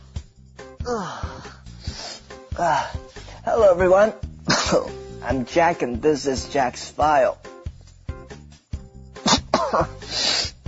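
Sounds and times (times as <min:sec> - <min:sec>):
speech: 0:00.9 - 0:01.3, 0:02.6 - 0:07.4, 0:09.7 - 0:10.0
person sneezing from allergies: 0:09.2 - 0:10.6.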